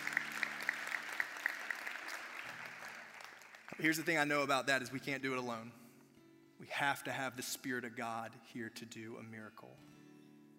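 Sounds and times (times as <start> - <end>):
audience applause: 0.0 - 3.8
speech: 3.8 - 5.8, 6.6 - 10.0.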